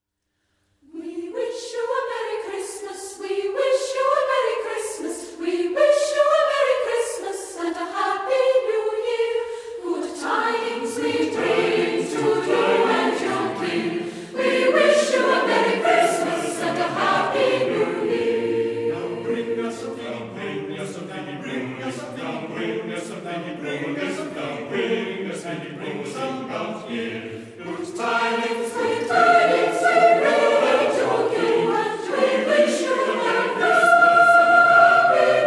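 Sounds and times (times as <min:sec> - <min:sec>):
choir singing: 0:00.8 - 0:35.4.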